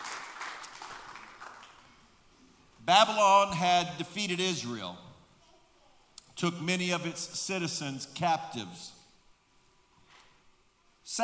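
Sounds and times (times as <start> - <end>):
audience applause: 0.0 - 1.9
speech: 2.9 - 5.1, 6.4 - 9.0, 11.1 - 11.2.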